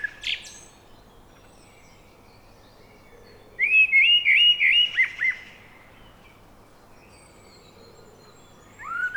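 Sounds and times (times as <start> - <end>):
Eurasian blackbird Turdus merula singing: 0.0 - 9.1.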